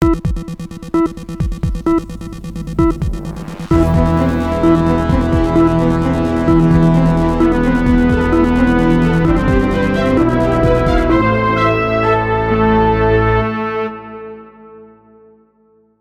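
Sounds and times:
Breaking News intro music: 0.0 - 14.1.

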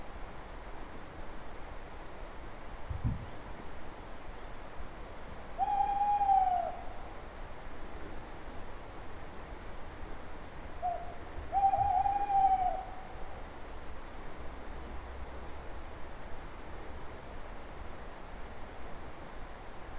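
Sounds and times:
owl hooting: 5.6 - 7.0, 10.8 - 13.2.

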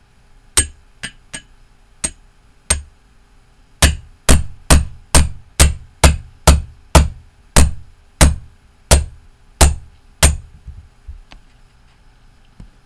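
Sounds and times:
hammering: 0.6 - 2.9, 3.8 - 10.5.

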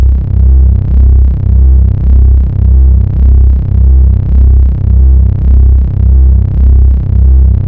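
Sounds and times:
dark bass: 0.0 - 7.6.

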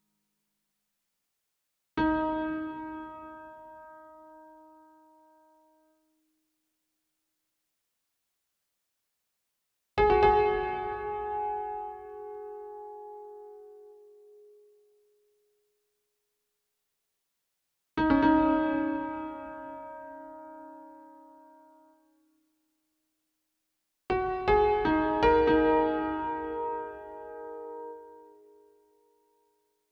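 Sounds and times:
piano: 2.0 - 5.8, 10.0 - 15.0, 18.0 - 22.1, 24.1 - 29.6.

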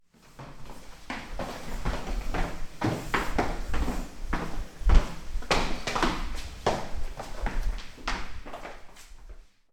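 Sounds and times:
footsteps on stairs: 0.1 - 9.5.

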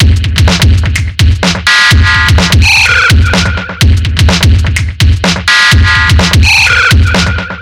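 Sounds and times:
abstract electro funk breakbeat: 0.0 - 7.5.

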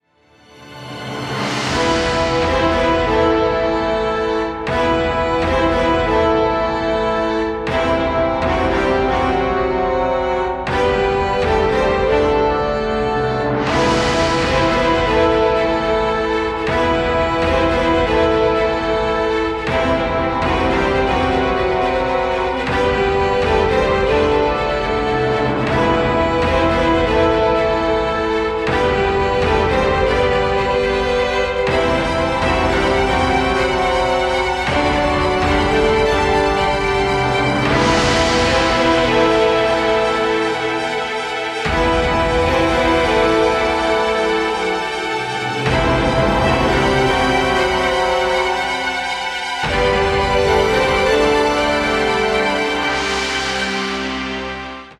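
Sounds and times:
epic fantasy music: 0.0 - 54.9.

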